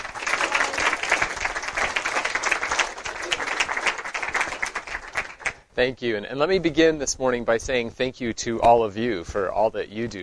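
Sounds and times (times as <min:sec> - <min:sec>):
audience applause welcoming a speaker at a University of Virginia event: 0:00.0 - 0:05.7
speech: 0:05.8 - 0:10.2.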